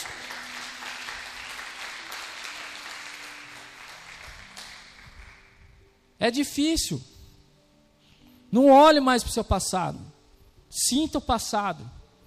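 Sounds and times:
audience applause: 0.0 - 5.5
speech: 6.2 - 7.1, 8.5 - 12.0.

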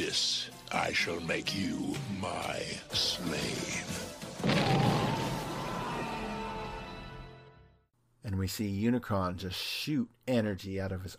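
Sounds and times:
speech: 0.0 - 5.0, 8.3 - 11.1
explosion: 4.4 - 6.8.

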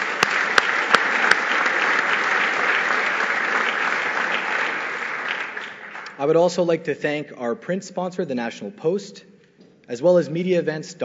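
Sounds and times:
audience round of applause: 0.0 - 6.4
speech: 6.2 - 9.3, 9.9 - 11.0.

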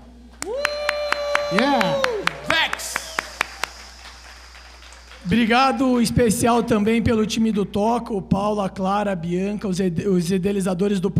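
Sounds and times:
audience claps: 0.3 - 6.0
speech: 1.5 - 3.0, 5.2 - 11.1.

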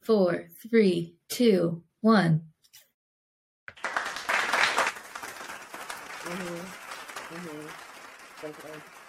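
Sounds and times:
speech: 0.0 - 2.5, 6.3 - 7.8, 8.4 - 9.0
crowd applause: 3.7 - 9.0.

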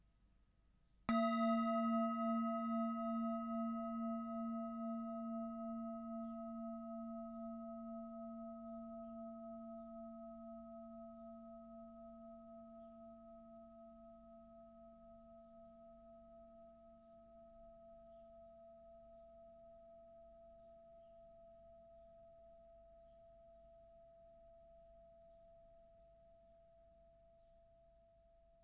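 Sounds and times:
struck singing bowl ringing: 1.1 - 21.3.

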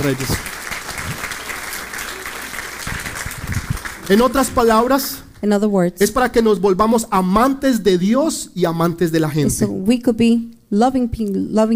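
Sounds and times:
speech: 0.0 - 0.6, 4.1 - 11.7
audience applause: 0.0 - 5.3.

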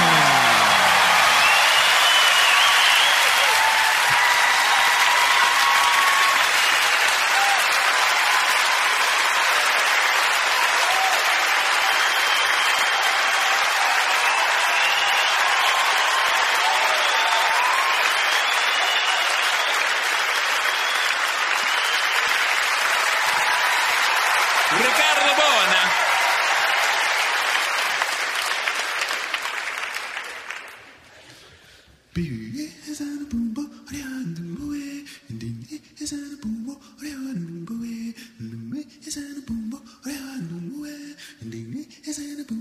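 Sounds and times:
whoops: 0.0 - 9.5, 10.5 - 22.4, 23.0 - 27.2
crowd round of applause: 0.0 - 31.3.

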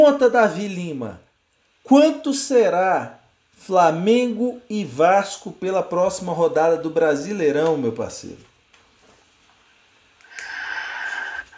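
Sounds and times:
speech: 0.0 - 1.2, 1.8 - 8.5
deep breath with faint whistling wheeze: 10.2 - 11.5.

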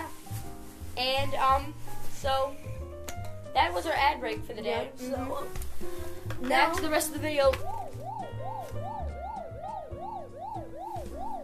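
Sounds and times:
speech: 1.0 - 2.7, 3.6 - 8.0
throbbing low pulse: 7.6 - 11.4
buzzer sound effect with warbling tone: 8.0 - 11.4.

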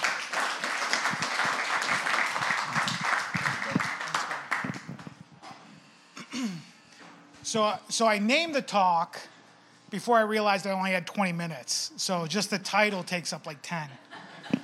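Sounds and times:
crowd applauding: 0.0 - 5.1
speech: 7.5 - 9.3, 9.9 - 14.1.

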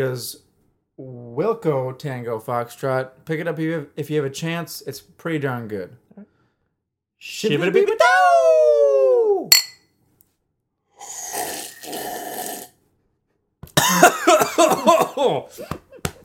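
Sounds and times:
speech: 0.0 - 0.4, 1.0 - 6.3, 7.2 - 8.7, 13.9 - 15.8
cough after slurping beer: 13.8 - 15.7.

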